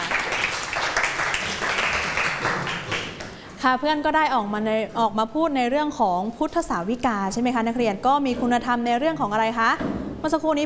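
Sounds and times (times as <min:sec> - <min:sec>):
classroom applause: 0:00.0 - 0:03.4
speech: 0:03.6 - 0:10.6.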